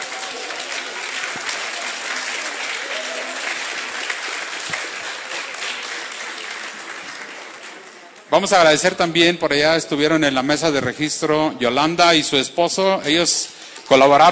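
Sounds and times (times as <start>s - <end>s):
audience applause: 0.0s - 8.8s
speech: 8.3s - 14.2s.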